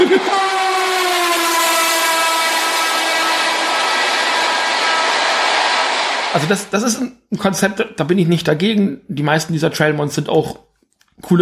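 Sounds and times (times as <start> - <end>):
laughter: 0.0 - 0.6
train horn blast: 0.4 - 4.6
train rumbling past: 0.4 - 6.4
speech: 6.3 - 11.4.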